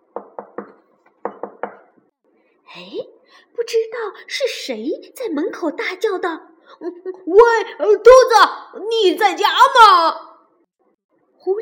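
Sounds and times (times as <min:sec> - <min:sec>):
knocking on a door: 0:00.0 - 0:02.0
speech: 0:02.8 - 0:10.3.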